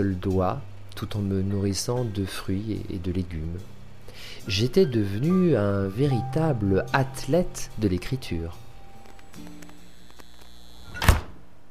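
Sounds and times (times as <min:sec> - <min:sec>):
speech: 0:00.0 - 0:08.6, 0:09.4 - 0:09.6
refrigerator door closing with a soft thud: 0:10.9 - 0:11.4.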